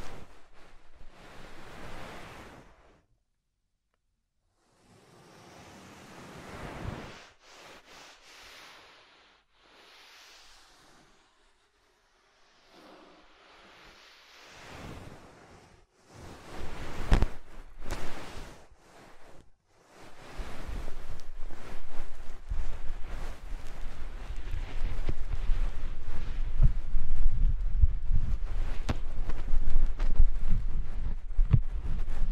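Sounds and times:
soft fluffy triggers rubbed over the microphone: 0:00.0 - 0:03.0, 0:12.7 - 0:32.3
heavy low rumble: 0:20.9 - 0:32.3.

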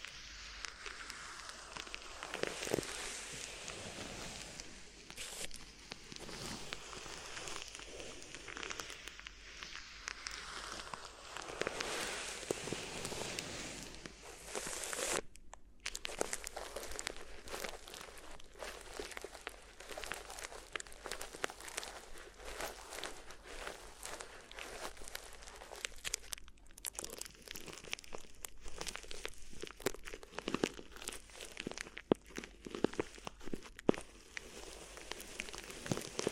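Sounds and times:
crinkly ear massage sounds: 0:00.0 - 0:36.3.

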